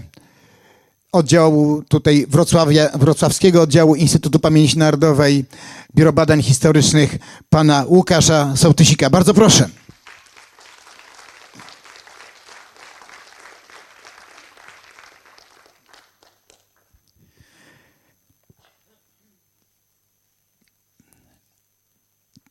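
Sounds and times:
speech: 1.1 - 9.8
audience applause: 9.6 - 17.0.

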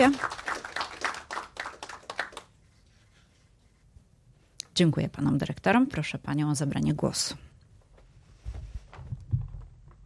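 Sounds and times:
speech: 0.0 - 0.4, 4.8 - 7.5
audience applause: 0.0 - 2.5.

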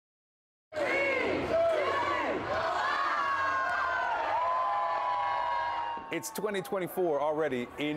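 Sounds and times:
large New Year crowd cheering: 0.8 - 7.1
speech: 6.1 - 7.9.

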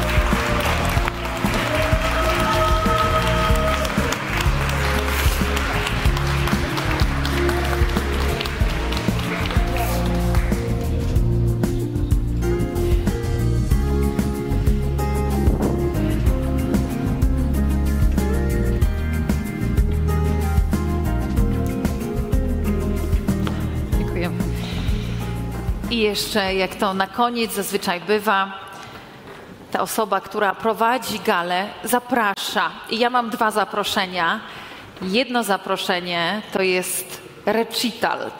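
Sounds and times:
audience applause: 0.0 - 11.0
music: 0.0 - 28.1
speech: 26.1 - 28.6, 29.8 - 38.3.

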